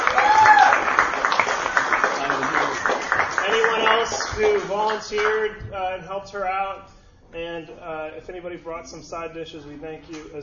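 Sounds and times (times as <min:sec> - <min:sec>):
people clapping: 0:00.0 - 0:05.5
speech: 0:04.8 - 0:10.4.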